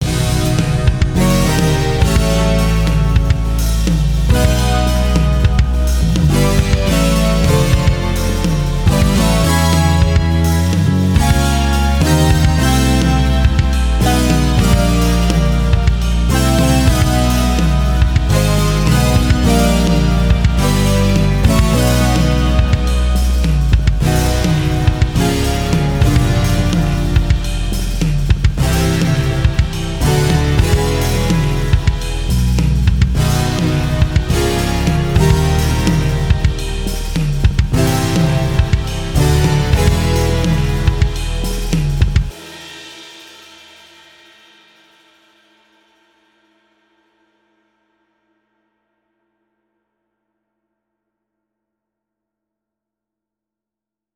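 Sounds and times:
odd off-kilter melody: 0.0s - 42.6s
off-kilter drums: 0.0s - 45.4s.

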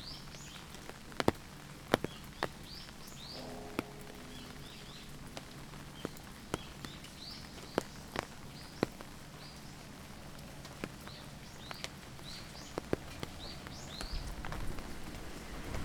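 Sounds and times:
rain on umbrella in Japan: 0.0s - 15.8s.

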